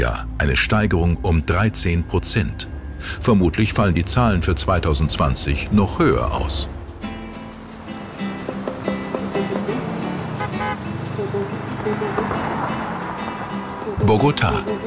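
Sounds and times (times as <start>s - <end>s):
indistinct voices: 0.0s - 6.8s, 13.9s - 14.8s
speech: 0.0s - 6.8s, 14.1s - 14.8s
jeep rumbling through busy city traffic: 0.0s - 14.8s
car horns: 9.0s - 11.2s.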